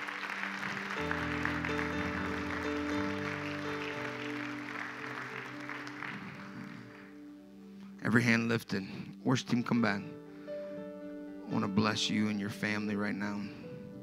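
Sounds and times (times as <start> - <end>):
audience applauding: 0.0 - 7.2
speech: 8.1 - 10.2, 11.5 - 13.6.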